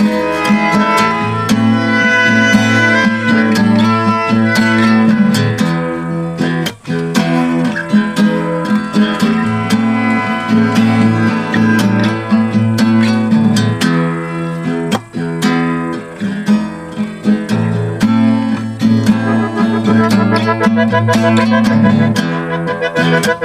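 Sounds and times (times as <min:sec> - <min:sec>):
melodica: 0:00.0 - 0:06.2, 0:08.0 - 0:13.3, 0:18.5 - 0:23.4
guitar: 0:00.0 - 0:23.4.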